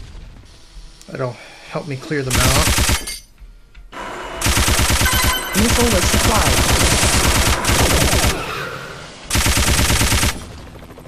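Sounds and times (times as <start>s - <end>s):
speech: 1.1s - 3.3s, 5.6s - 7.0s
machine gun fire in a video game: 2.3s - 3.0s, 4.4s - 8.5s, 9.3s - 10.5s.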